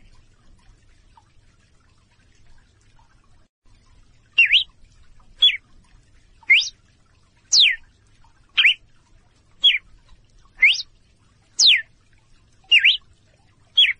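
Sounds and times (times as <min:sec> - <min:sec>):
female red-cowled cardinal calling in clear short whistles: 0:04.4 - 0:04.7, 0:06.5 - 0:06.7, 0:07.5 - 0:07.8, 0:08.6 - 0:08.8, 0:10.6 - 0:10.9, 0:11.6 - 0:11.8, 0:12.7 - 0:13.0, 0:13.8 - 0:13.9.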